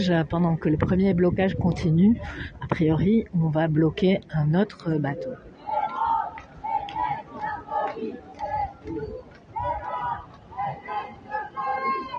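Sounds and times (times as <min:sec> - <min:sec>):
speech: 0:00.0 - 0:05.5
large crowd chanting a slogan: 0:05.4 - 0:12.1
shouting: 0:05.6 - 0:12.1.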